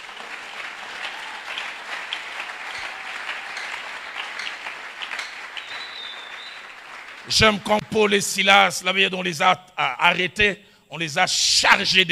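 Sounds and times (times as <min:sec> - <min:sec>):
congregation applauding during a church sermon: 0:00.0 - 0:08.2
speech: 0:07.3 - 0:12.1.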